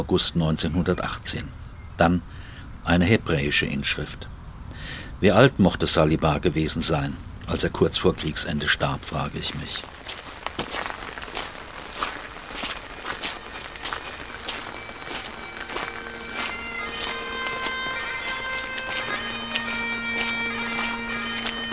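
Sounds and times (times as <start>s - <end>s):
speech: 0.0s - 10.1s
footsteps crunching on gravel: 6.8s - 21.7s
rain on umbrellas: 9.5s - 21.6s.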